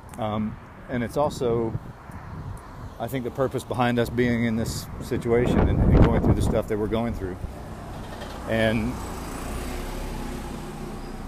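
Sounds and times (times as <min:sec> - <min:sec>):
bus traffic rumble: 0:00.0 - 0:11.2
speech: 0:00.2 - 0:02.0, 0:03.0 - 0:07.5, 0:08.5 - 0:09.1
outdoor breeze: 0:01.2 - 0:03.0, 0:04.1 - 0:06.8.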